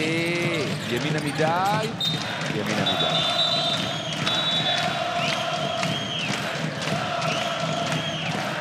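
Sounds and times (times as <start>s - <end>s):
basketball arena crowd roaring and cheering: 0.0s - 8.6s
speech: 0.9s - 3.4s
whistles: 2.0s - 6.5s, 7.2s - 8.6s
scattered shouts: 2.0s - 8.6s.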